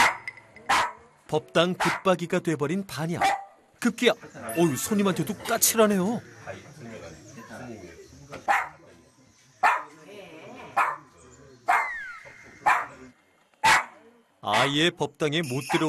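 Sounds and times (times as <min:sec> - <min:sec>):
small dog barking loudly: 0:00.0 - 0:01.0, 0:03.2 - 0:03.6, 0:09.6 - 0:09.9, 0:13.6 - 0:14.7
speech: 0:01.3 - 0:08.7, 0:14.4 - 0:15.8.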